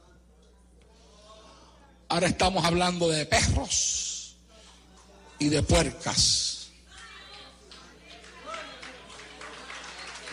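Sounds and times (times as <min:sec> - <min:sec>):
speech: 0:02.2 - 0:04.1, 0:05.4 - 0:06.5
audience applauding: 0:08.1 - 0:10.3.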